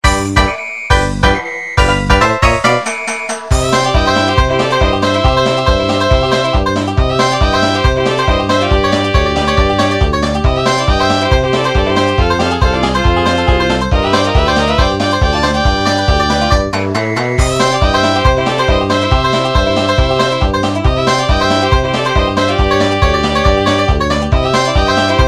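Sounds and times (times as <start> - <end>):
minigame music: 0.0 - 25.2.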